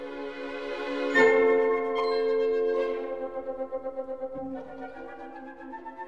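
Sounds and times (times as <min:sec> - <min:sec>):
glockenspiel in orchestral scherzo: 0:00.3 - 0:05.7.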